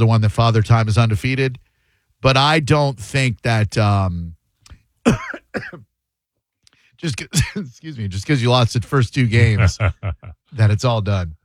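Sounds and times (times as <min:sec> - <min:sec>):
speech: 0:00.0 - 0:04.4, 0:05.0 - 0:05.9, 0:07.0 - 0:11.4
coughing from something stuck in the throat: 0:05.0 - 0:05.9, 0:07.2 - 0:07.9
laughter: 0:09.3 - 0:10.6.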